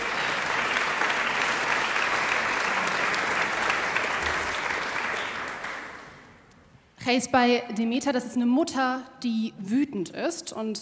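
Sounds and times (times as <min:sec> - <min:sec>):
audience applause: 0:00.0 - 0:06.4
speech: 0:07.1 - 0:10.8.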